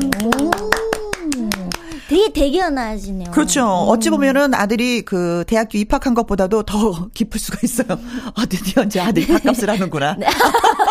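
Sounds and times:
hands clapping: 0.0 - 2.2, 3.0 - 3.5
speech: 2.1 - 10.8
laughter: 8.7 - 10.8.

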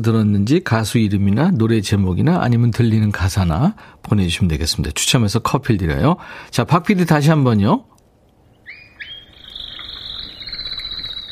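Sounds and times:
speech: 0.0 - 7.9
canary singing: 8.4 - 11.3.

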